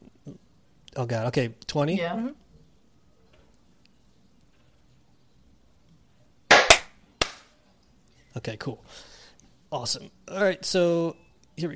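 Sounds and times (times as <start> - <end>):
speech: 1.0 - 2.4, 8.4 - 11.7
hand clap slate for audio sync: 6.5 - 7.5.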